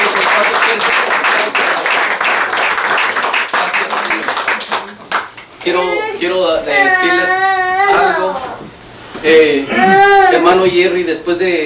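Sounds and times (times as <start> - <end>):
applause: 0.0 - 5.5
speech: 5.6 - 7.4, 9.2 - 11.6.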